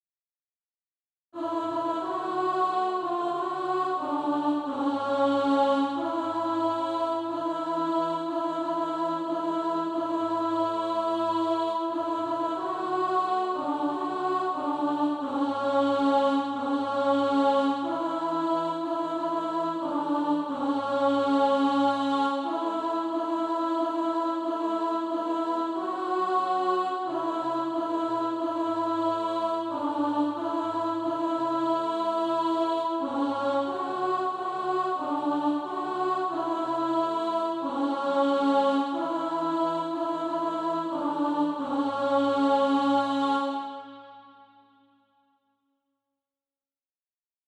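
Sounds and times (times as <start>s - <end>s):
alto voice singing practice music: 1.4s - 44.6s.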